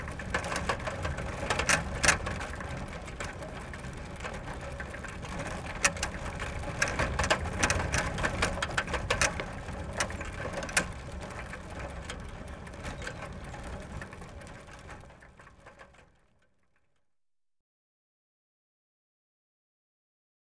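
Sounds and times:
bicycles riding fast: 0:00.0 - 0:16.2.

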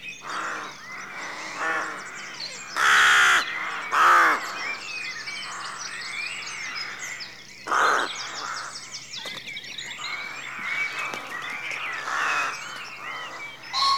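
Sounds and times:
rook cawing at a rookery at dawn in a rural setting: 0:00.2 - 0:04.8, 0:06.6 - 0:08.8, 0:10.0 - 0:13.9.

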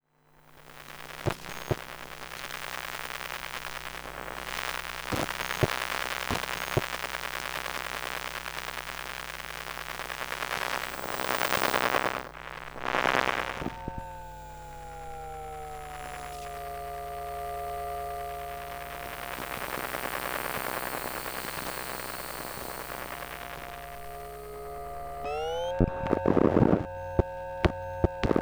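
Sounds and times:
Asus laptop electromagnetic field emissions: 0:00.6 - 0:28.3.

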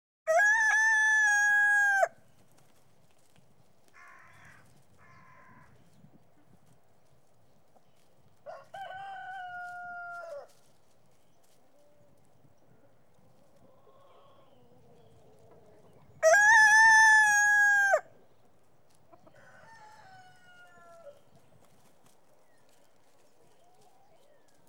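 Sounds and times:
chicken crowing: 0:00.3 - 0:02.2, 0:08.5 - 0:10.5, 0:16.2 - 0:18.1, 0:19.3 - 0:21.2.

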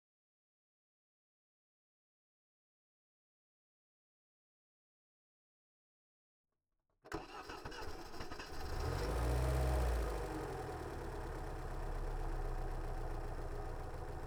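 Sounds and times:
1996 Lada Niva engine starting and idling with blips recorded onboard: 0:07.1 - 0:14.2.

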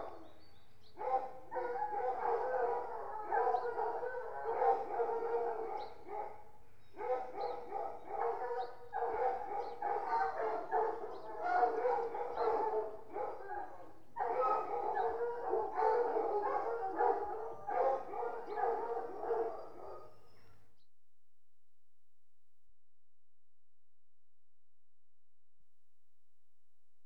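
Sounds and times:
dogs at a hunt kennel: 0:01.0 - 0:20.7.

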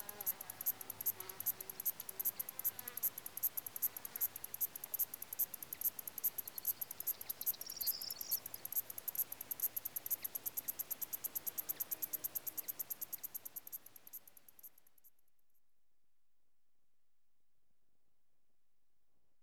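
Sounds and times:
crickets chirping in Lassi Greece: 0:00.0 - 0:15.1.

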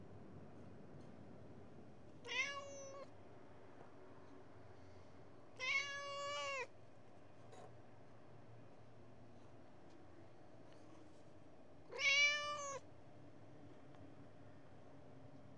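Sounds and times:
Persian cat meowing: 0:02.2 - 0:03.1, 0:05.6 - 0:06.7, 0:11.9 - 0:12.8.

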